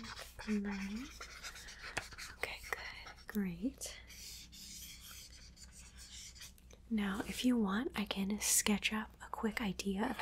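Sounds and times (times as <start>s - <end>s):
pen writing notes during a tailor's suit measurement: 0.0s - 3.3s, 4.1s - 6.5s
speech: 0.4s - 1.2s, 3.3s - 4.0s, 6.9s - 10.1s.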